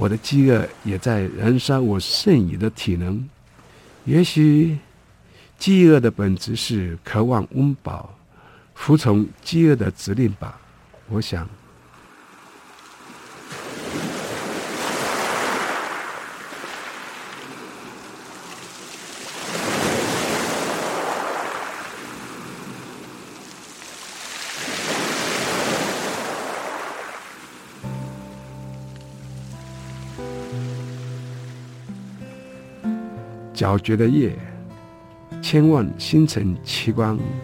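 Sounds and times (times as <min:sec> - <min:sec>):
speech: 0:00.0 - 0:03.4, 0:04.0 - 0:04.9, 0:05.6 - 0:08.2, 0:08.8 - 0:11.6, 0:33.6 - 0:34.5, 0:35.4 - 0:37.4
ocean waves on the sea: 0:00.0 - 0:35.3
soft sustained music tones: 0:27.8 - 0:37.4.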